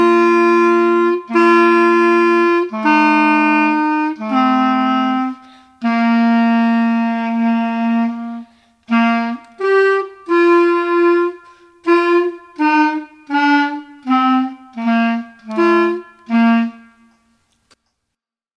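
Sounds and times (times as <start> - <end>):
clarinet duet: 0.0 - 17.5.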